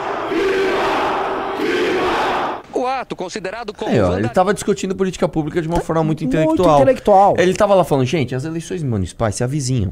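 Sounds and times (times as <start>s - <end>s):
crowd shouting: 0.0s - 2.6s
speech: 3.0s - 9.9s.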